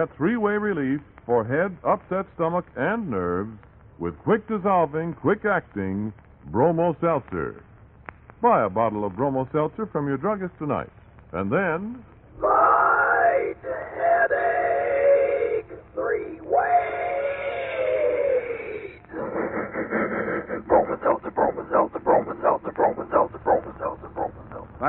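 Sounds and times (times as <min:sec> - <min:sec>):
speech: 0:00.0 - 0:07.7, 0:08.4 - 0:12.6
Bromo Seltzer train chugging sound effect: 0:13.7 - 0:24.8.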